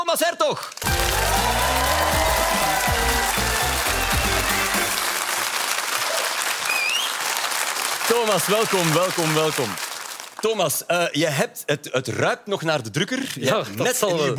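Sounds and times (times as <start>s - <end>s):
speech: 0.1s - 1.2s, 8.1s - 9.8s, 10.4s - 14.3s
audience applause: 0.7s - 10.4s.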